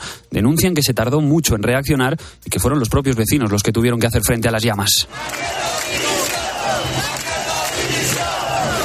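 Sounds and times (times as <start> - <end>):
speech: 0.3 - 6.0
large protest crowd chanting and shouting in unison for a resignation: 5.0 - 8.8.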